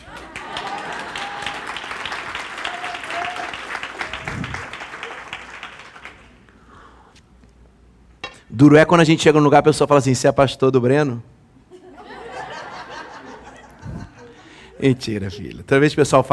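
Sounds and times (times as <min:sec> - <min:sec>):
laughter: 0:00.0 - 0:05.6, 0:11.7 - 0:15.7
church audience applause: 0:00.0 - 0:06.5
speech: 0:08.6 - 0:11.3, 0:14.8 - 0:16.3.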